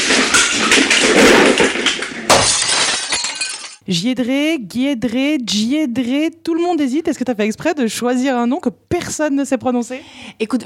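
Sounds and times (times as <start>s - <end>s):
glass shattering in a dressing room: 0.0s - 3.8s
objects crashing as things are smashed in a dressing room: 0.0s - 3.8s
speech: 3.9s - 10.6s.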